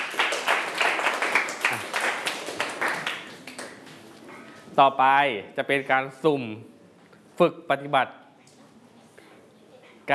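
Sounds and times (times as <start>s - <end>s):
students clapping for a classmate: 0.0s - 4.2s
speech: 4.8s - 6.7s, 7.4s - 8.2s.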